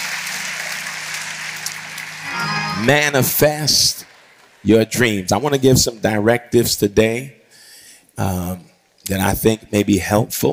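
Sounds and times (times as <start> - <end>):
audience clapping hands: 0.0 - 5.6
speech: 2.8 - 7.4, 8.2 - 10.5.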